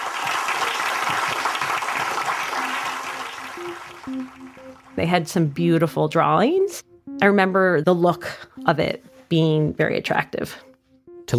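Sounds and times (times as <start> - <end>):
roomful of people applauding after a presentation: 0.0 - 5.0
speech: 4.1 - 10.7.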